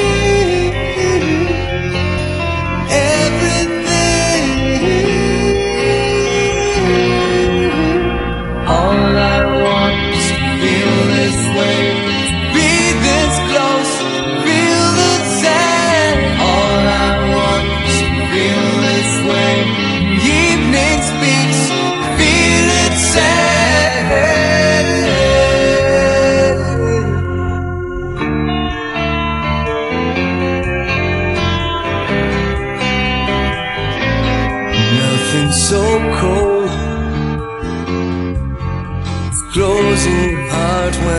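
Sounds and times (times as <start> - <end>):
music without drums: 0.0 - 41.1.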